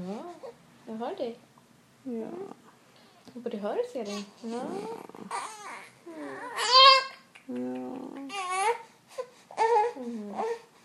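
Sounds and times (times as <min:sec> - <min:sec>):
speech: 0:01.0 - 0:02.6, 0:03.3 - 0:06.8, 0:07.5 - 0:08.3
tired baby fussing and crying: 0:04.1 - 0:07.2, 0:08.2 - 0:10.7.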